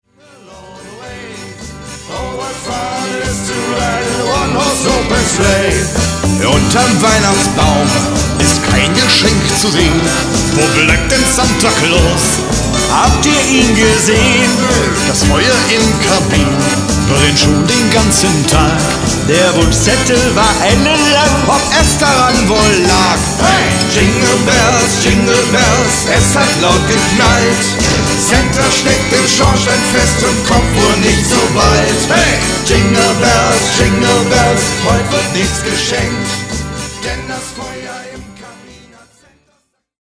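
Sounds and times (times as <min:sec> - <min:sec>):
sleigh bells on cobblestones: 0:00.2 - 0:39.1.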